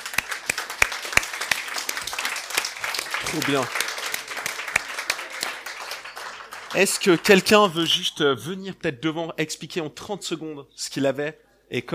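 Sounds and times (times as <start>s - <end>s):
audience applause: 0.0s - 7.8s
speech: 3.3s - 3.8s, 6.7s - 11.9s.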